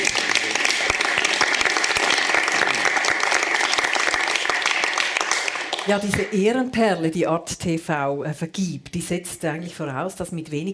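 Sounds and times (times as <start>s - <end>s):
audience applause: 0.0s - 6.3s
speech: 5.9s - 10.7s.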